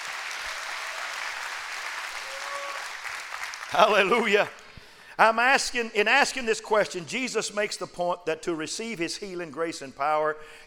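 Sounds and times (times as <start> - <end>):
audience clapping hands: 0.0 - 4.5
speech: 3.7 - 4.6, 5.2 - 10.6.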